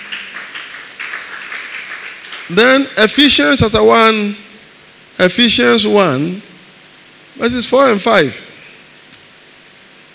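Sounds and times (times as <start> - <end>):
crowd clapping: 0.0 - 3.0
speech: 2.5 - 4.4, 5.2 - 6.5, 7.4 - 8.4.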